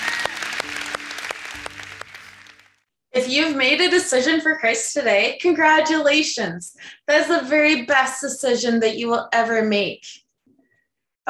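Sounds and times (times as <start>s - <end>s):
church congregation applauding to celebrate new believers: 0.0s - 2.8s
speech: 3.2s - 10.2s.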